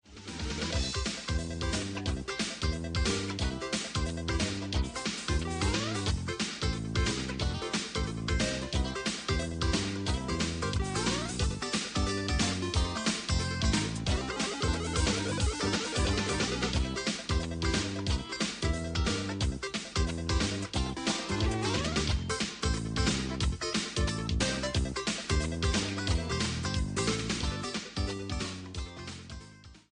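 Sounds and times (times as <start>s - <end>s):
instrumental music: 0.1s - 29.9s.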